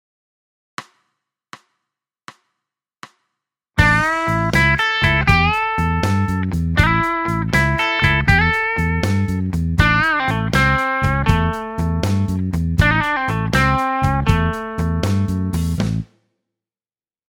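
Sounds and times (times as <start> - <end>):
blues music: 3.8 - 16.0.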